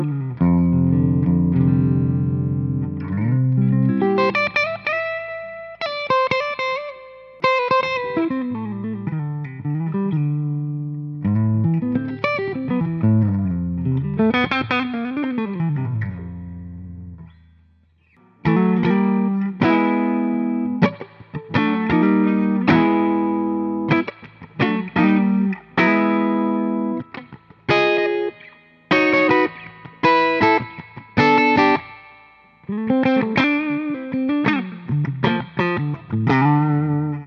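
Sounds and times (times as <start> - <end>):
clean electric guitar through Carvin Legacy amplifier: 0.0 - 37.2.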